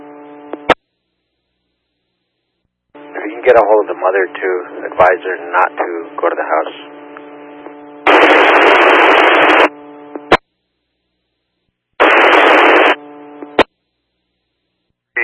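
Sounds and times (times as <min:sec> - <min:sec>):
steady low electrical hum: 0:00.0 - 0:15.2
harsh radio static bursts: 0:03.0 - 0:10.4, 0:12.0 - 0:13.7
speech: 0:03.4 - 0:06.9.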